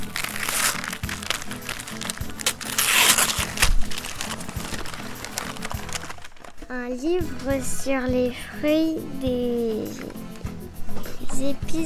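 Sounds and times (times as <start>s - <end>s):
gift wrapping paper being unwrapped: 0.0s - 6.8s
speech: 6.7s - 10.2s, 11.4s - 11.8s.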